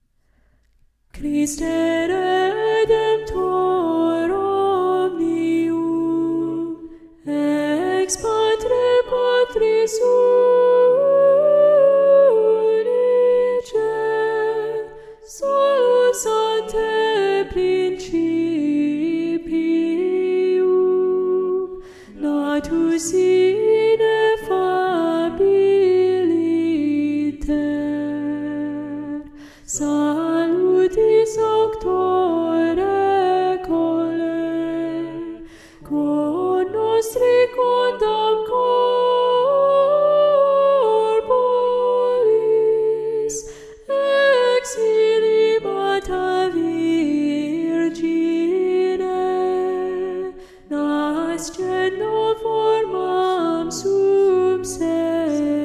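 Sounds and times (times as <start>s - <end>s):
soprano singing: 1.1s - 55.6s.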